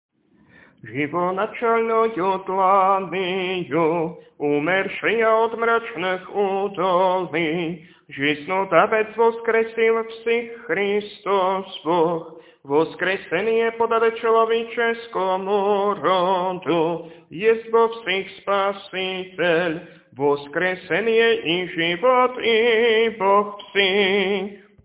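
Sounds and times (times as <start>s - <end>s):
Sunday kontakion chant in tone 6: 0.8s - 24.6s.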